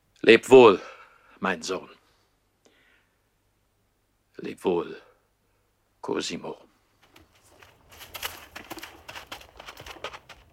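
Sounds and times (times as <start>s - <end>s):
speech: 0.2s - 2.0s, 4.4s - 5.0s, 6.0s - 6.7s
horse hooves clopping at a slow walking pace on hard ground: 7.0s - 10.5s.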